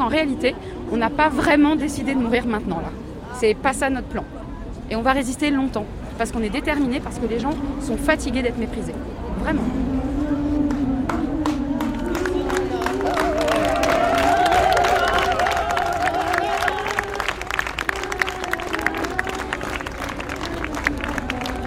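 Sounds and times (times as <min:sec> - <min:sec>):
speech: 0:00.1 - 0:10.0
crowd of protesters applauding: 0:11.1 - 0:21.6
protesters cheering and calling out: 0:12.1 - 0:20.2.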